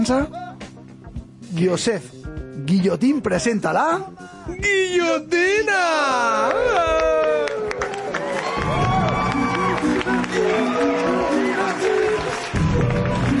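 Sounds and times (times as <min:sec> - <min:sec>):
speech: 0:00.0 - 0:00.4, 0:01.5 - 0:07.4
audience applauding: 0:06.3 - 0:13.3.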